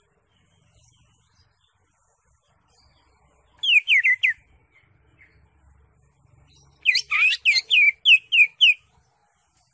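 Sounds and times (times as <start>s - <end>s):
Greater Green Leafbird singing varied phrases: 0.0s - 9.7s.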